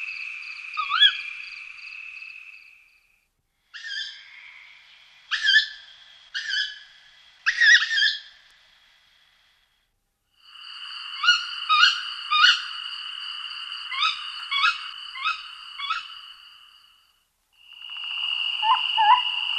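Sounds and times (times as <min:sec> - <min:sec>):
tawny owl giving harsh sharp screeching calls: 0:00.8 - 0:01.2, 0:03.8 - 0:04.6, 0:05.3 - 0:08.3, 0:11.2 - 0:12.7, 0:13.9 - 0:16.2, 0:18.6 - 0:19.4.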